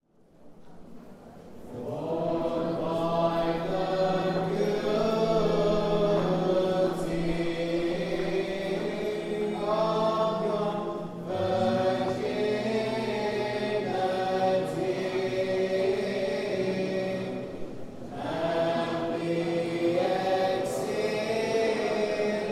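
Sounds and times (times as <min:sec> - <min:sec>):
troparion chant in English: 0:00.6 - 0:22.5.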